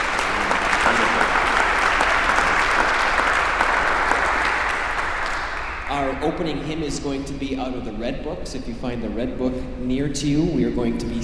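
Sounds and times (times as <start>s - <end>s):
audience applauding: 0.0s - 6.4s
speech: 6.2s - 11.2s.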